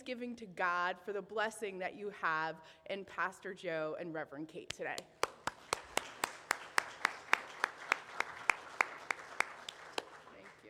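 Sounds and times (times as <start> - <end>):
speech: 0.1 - 5.2
audience clapping in unison: 5.0 - 10.6.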